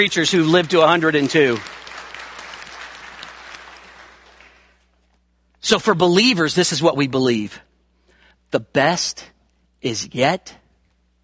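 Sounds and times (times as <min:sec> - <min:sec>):
speech: 0:00.0 - 0:01.8, 0:05.7 - 0:07.7, 0:08.5 - 0:10.6
audience applause: 0:00.0 - 0:04.7.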